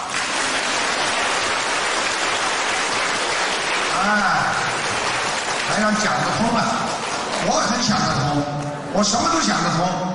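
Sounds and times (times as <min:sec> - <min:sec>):
crowd applause: 0:00.0 - 0:08.3
speech: 0:05.8 - 0:06.8, 0:07.4 - 0:10.1.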